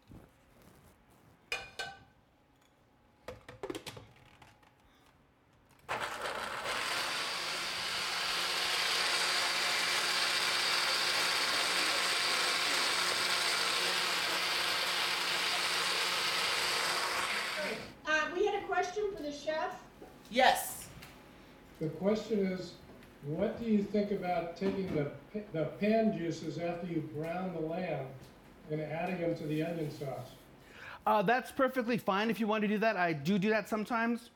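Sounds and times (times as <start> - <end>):
kitchen blender running: 5.9 - 18.0
speech: 18.9 - 20.6, 21.8 - 30.4, 31.0 - 34.3.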